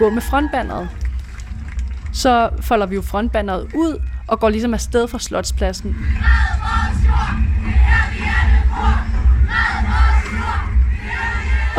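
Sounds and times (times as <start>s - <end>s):
speech: 0.0s - 1.0s, 2.1s - 7.4s
climate march crowd shouting chants: 6.2s - 11.7s.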